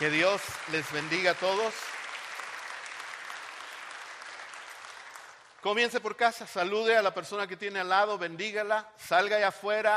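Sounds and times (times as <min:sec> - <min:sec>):
speech: 0:00.0 - 0:02.0, 0:05.6 - 0:09.9
audience applause: 0:00.0 - 0:05.7.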